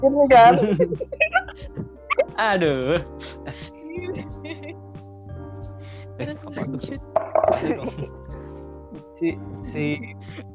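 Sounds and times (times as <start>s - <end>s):
speech: 0.0s - 1.8s, 2.4s - 3.4s, 6.2s - 8.3s, 8.9s - 10.5s
laughter: 0.4s - 2.3s, 7.4s - 8.2s
bottle falling over: 7.2s - 7.8s.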